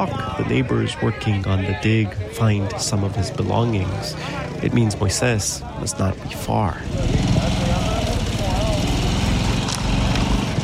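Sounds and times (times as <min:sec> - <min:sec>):
speech: 0:00.0 - 0:07.5
motorcycle engine running: 0:06.8 - 0:10.6.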